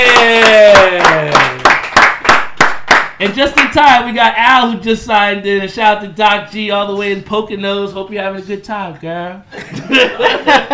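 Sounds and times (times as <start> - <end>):
round of applause: 0.0 - 3.7
speech: 3.3 - 10.7
laughter: 9.5 - 10.7.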